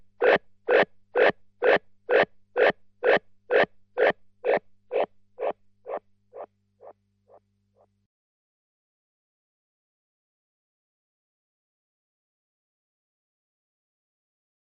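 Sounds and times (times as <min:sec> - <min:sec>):
bright oscillator tone: 0:00.2 - 0:06.5.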